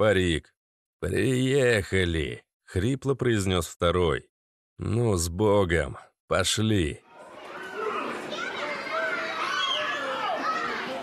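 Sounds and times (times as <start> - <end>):
speech: 0.0 - 7.0
children squealing with joy: 7.1 - 11.0.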